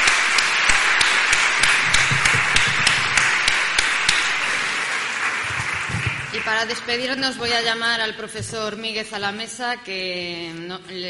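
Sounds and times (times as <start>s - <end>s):
audience applause: 0.0s - 7.3s
speech: 6.6s - 11.0s.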